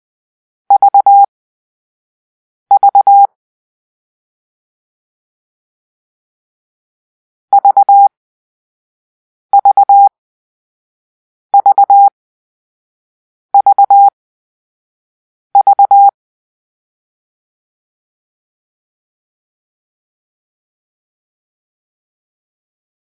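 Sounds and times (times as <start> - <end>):
morse code for the letter V: 0.7 - 1.3, 2.7 - 3.3, 7.5 - 8.1, 9.6 - 10.1, 11.6 - 12.1, 13.6 - 14.1, 15.6 - 16.1.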